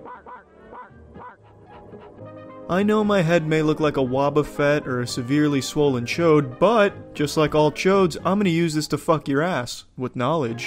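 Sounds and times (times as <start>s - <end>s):
robot dog Airbud barking: 0.0s - 1.5s
speech: 2.7s - 10.6s.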